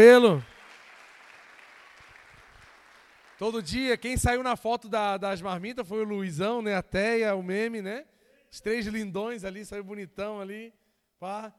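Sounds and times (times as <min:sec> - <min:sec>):
speech: 0:00.0 - 0:00.5, 0:03.4 - 0:11.5
audience applause: 0:00.0 - 0:03.8.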